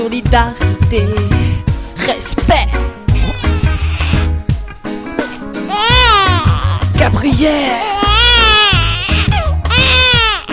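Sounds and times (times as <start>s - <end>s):
speech: 0.0s - 1.3s, 2.1s - 3.0s, 7.0s - 8.1s
baby crying: 2.7s - 4.4s, 5.2s - 10.5s.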